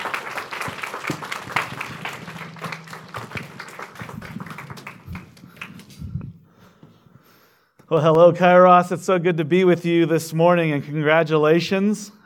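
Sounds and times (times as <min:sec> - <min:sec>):
audience applause: 0:00.0 - 0:06.2
speech: 0:07.9 - 0:12.2.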